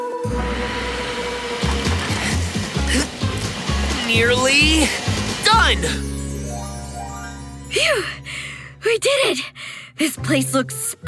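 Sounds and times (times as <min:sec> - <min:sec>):
vacuum cleaner running: 0:00.1 - 0:06.2
speech: 0:04.1 - 0:06.1, 0:07.7 - 0:11.0.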